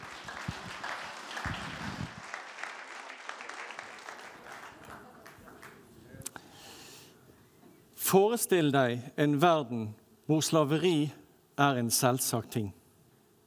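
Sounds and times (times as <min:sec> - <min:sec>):
audience applause: 0:00.0 - 0:06.0
speech: 0:08.1 - 0:12.8.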